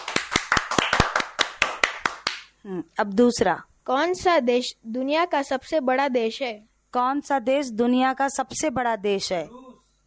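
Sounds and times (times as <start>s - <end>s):
children in a classroom quiz clapping for a correct answer: 0.0s - 2.5s
speech: 2.6s - 9.7s.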